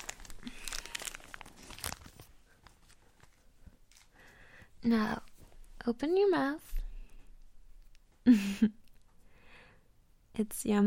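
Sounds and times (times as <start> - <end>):
chocolate mint wrapper crinkling: 0.0 - 4.3
speech: 4.8 - 6.7, 8.2 - 8.8, 10.4 - 10.8.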